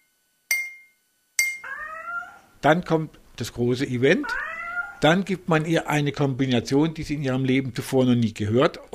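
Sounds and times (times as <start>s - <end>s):
spoon tapping a glass: 0.5s - 1.6s
cat meowing: 1.6s - 2.6s, 4.2s - 5.0s
speech: 2.6s - 8.9s.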